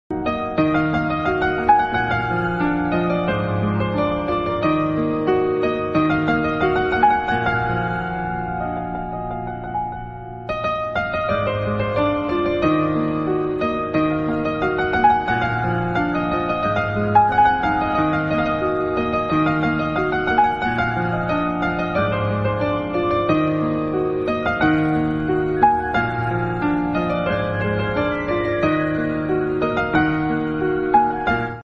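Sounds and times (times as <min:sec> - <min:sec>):
instrumental music: 0:00.1 - 0:31.6.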